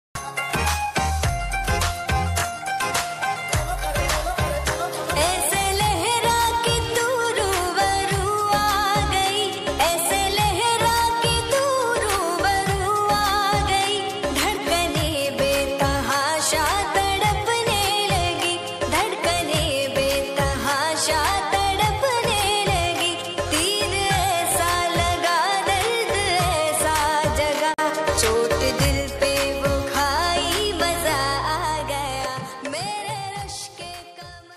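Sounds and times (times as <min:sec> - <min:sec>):
romantic version song ringtone: 0:00.2 - 0:34.4.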